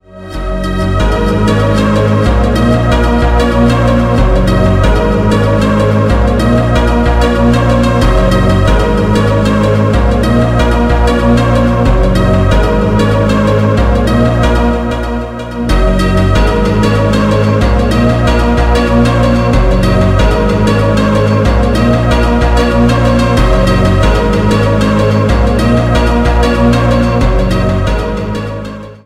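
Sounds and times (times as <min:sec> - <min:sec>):
calm phonk music: 0:00.0 - 0:29.0.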